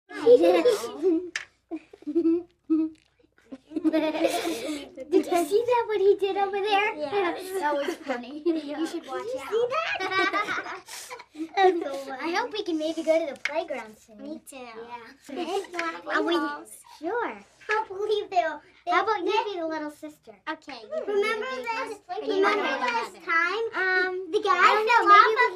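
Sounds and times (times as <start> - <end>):
five-year-old children chatting: 0.1 - 2.9, 3.5 - 25.5
five-year-old children giggling: 0.1 - 5.0, 7.4 - 12.0.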